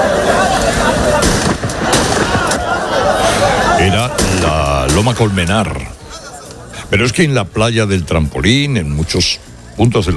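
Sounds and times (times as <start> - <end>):
laughter: 0.0 - 6.9
crowd commotion with voices: 0.0 - 10.1
police gunshots fired into the air among shanty dwellings: 0.4 - 3.1, 3.9 - 5.3
speech: 5.0 - 6.0, 6.9 - 10.1.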